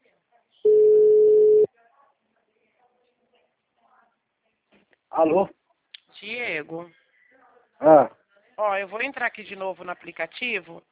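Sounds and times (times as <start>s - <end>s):
telephone ringback tone on an outgoing call: 0.7s - 1.7s
speech: 5.2s - 5.6s, 6.2s - 7.0s, 7.8s - 10.9s.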